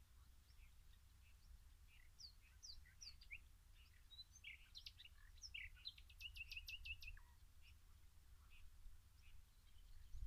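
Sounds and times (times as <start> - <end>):
common nightingale singing: 0.0 - 10.2.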